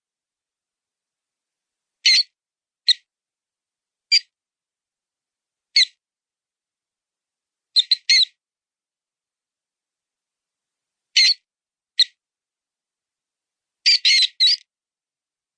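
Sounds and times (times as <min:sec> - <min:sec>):
mouse sound: 0:02.0 - 0:03.1, 0:04.1 - 0:04.3, 0:05.8 - 0:06.0, 0:07.8 - 0:08.4, 0:11.2 - 0:12.2, 0:13.8 - 0:14.7.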